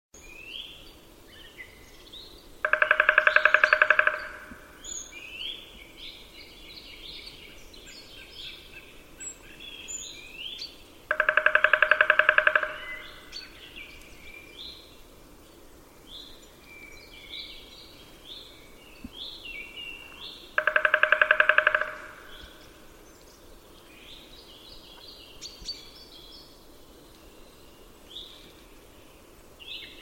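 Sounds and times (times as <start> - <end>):
other birds chirping: 2.6 - 5.1, 10.0 - 14.5, 17.2 - 26.0
bird giving a pulsed trill: 2.7 - 4.6, 11.1 - 13.1, 20.6 - 22.5.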